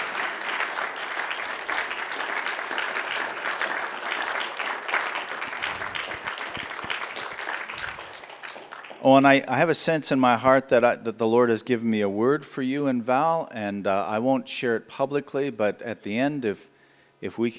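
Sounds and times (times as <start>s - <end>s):
crowd applauding: 0.0s - 9.4s
speech: 9.0s - 17.5s.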